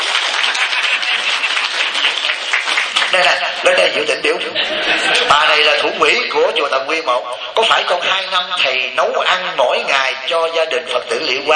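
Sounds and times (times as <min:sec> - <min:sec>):
applause from a gathering at a Buddhist temple: 0:00.0 - 0:03.9
laughter: 0:00.0 - 0:06.5
speech: 0:03.2 - 0:11.5.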